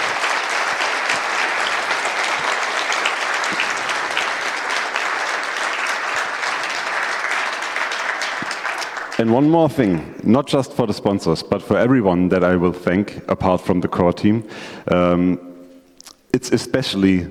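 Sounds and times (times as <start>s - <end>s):
audience applause: 0.0s - 9.7s
speech: 9.2s - 15.5s, 16.4s - 17.3s.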